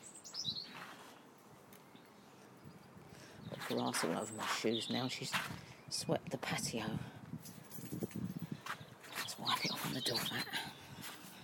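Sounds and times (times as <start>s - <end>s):
birds singing: 0.0s - 0.8s, 1.9s - 6.7s, 8.7s - 11.0s
speech: 3.7s - 7.6s, 10.0s - 10.7s.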